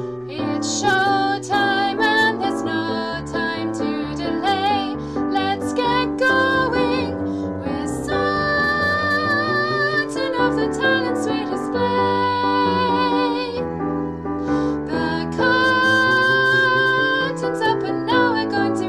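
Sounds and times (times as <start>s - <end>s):
vocals: 0.1s - 18.8s.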